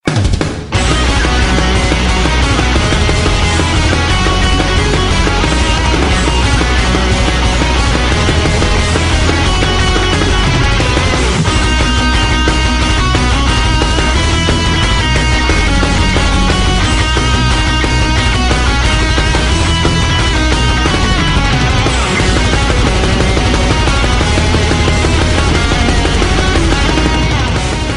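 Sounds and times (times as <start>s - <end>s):
metal music: 0.0s - 27.9s.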